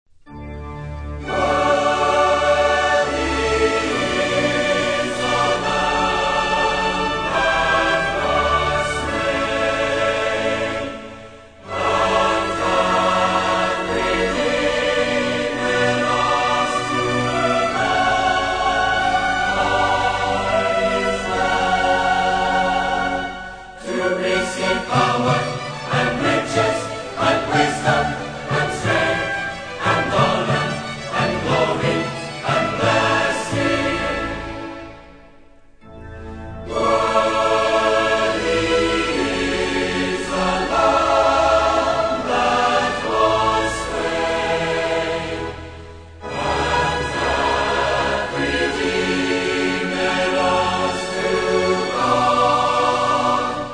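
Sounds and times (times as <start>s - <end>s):
choir singing: 0.3s - 53.7s
orchestra playing: 0.3s - 53.7s.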